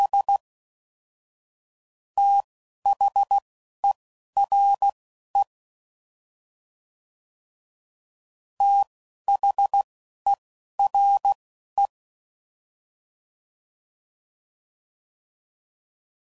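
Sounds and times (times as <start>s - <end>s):
Morse code CW code groups: 2.2s - 5.5s, 8.6s - 11.9s.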